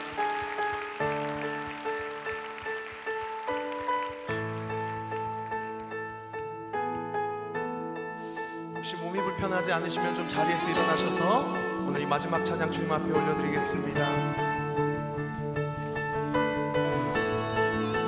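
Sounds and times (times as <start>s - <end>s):
audience applause: 0.0s - 6.1s
sustained keyboard chords: 0.0s - 18.0s
speech: 8.9s - 14.4s.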